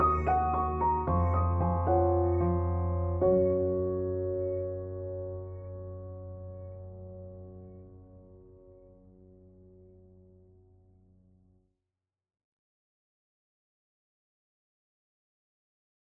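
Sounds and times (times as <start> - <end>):
chillout music: 0.0 - 10.7.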